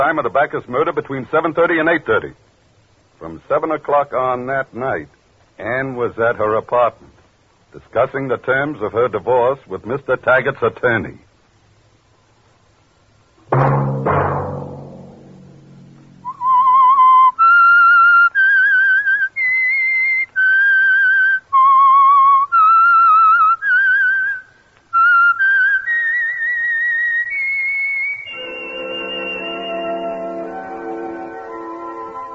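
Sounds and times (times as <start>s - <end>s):
speech: 0.0s - 2.4s, 3.2s - 11.2s
sharp opening musical hits: 13.5s - 16.4s
whistled theme melody: 16.2s - 32.3s.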